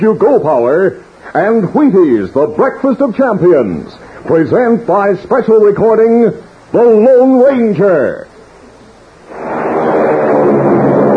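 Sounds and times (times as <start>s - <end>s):
speech: 0.0s - 8.3s
airliner taking off: 9.2s - 11.1s.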